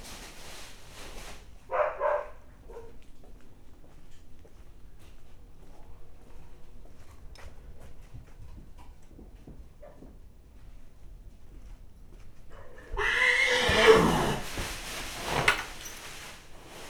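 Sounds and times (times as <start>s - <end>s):
nervous agitated horse whinnying in a stable on a farmyard: 12.9s - 15.6s.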